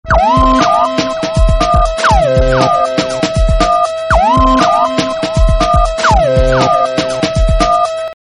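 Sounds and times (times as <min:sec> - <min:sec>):
techno trance music: 0:00.1 - 0:08.1.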